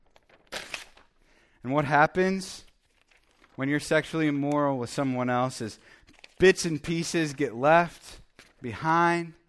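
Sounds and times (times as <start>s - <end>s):
paper rustling: 0.0s - 1.2s, 2.4s - 9.0s
two taped pieces of paper being ripped apart: 0.1s - 1.1s
speech: 1.6s - 2.6s, 3.6s - 9.4s.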